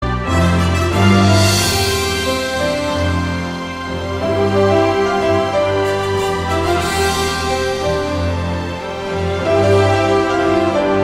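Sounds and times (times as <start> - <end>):
instrumental music: 0.0 - 11.0.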